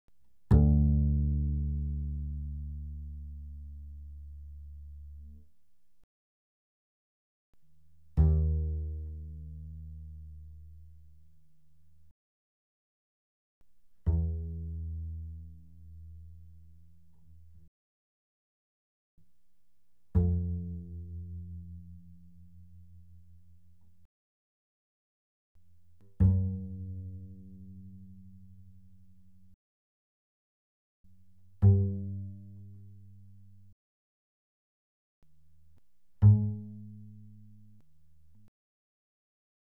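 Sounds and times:
fortissimo double bass pizzicato on the D string: 0:00.5 - 0:05.5, 0:07.9 - 0:12.1, 0:14.0 - 0:17.7, 0:20.0 - 0:24.1, 0:25.8 - 0:29.6, 0:31.1 - 0:33.8, 0:35.5 - 0:38.5.

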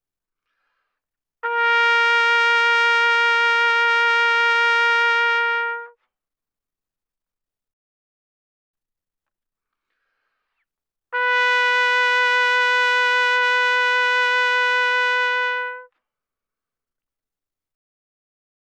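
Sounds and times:
trumpet playing loud notes with vibrato: 0:01.4 - 0:06.0, 0:11.1 - 0:15.9.

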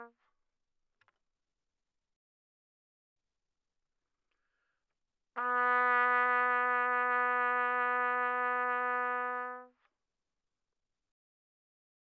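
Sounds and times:
soft trumpet with vibrato: 0:05.4 - 0:09.8.

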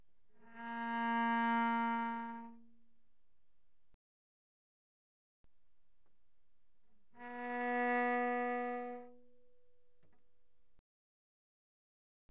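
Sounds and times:
cello bowed very softly on the D string: 0:00.3 - 0:02.9, 0:07.0 - 0:10.3.

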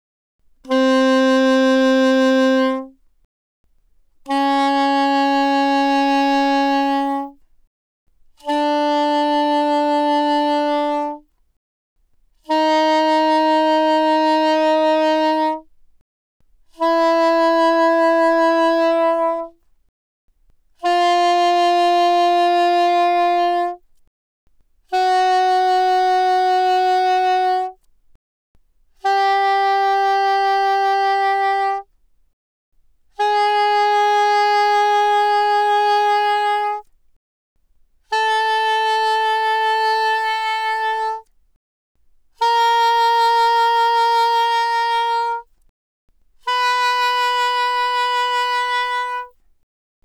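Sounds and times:
soprano saxophone notes C4 to B4 with vibrato played fortissimo: 0:00.6 - 0:03.0, 0:04.2 - 0:07.4, 0:08.4 - 0:11.3, 0:12.4 - 0:15.7, 0:16.7 - 0:19.7, 0:20.8 - 0:23.9, 0:24.8 - 0:27.9, 0:29.0 - 0:31.9, 0:33.1 - 0:36.9, 0:38.0 - 0:41.3, 0:42.3 - 0:45.5, 0:46.4 - 0:49.4.

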